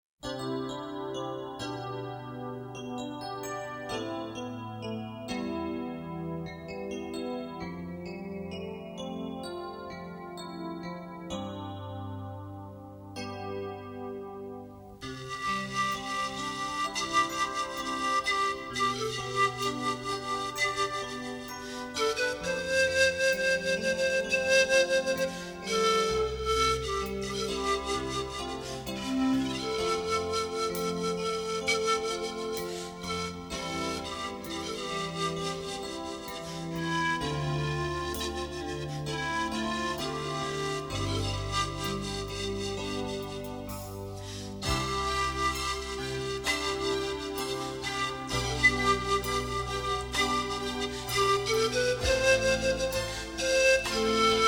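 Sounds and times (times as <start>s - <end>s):
flute: 0.2s - 54.4s.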